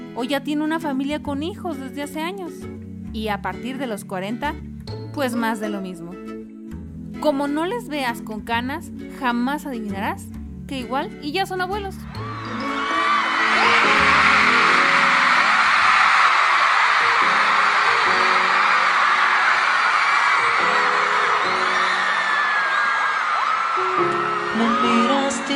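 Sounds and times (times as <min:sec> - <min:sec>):
speech: 0:00.2 - 0:06.3, 0:07.1 - 0:12.3
crowd shouting and cheering: 0:12.0 - 0:25.5.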